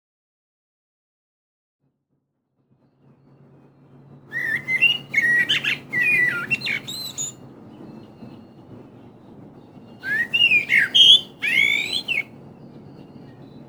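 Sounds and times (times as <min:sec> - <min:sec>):
common blackbird song: 0:04.4 - 0:07.3, 0:10.0 - 0:12.2.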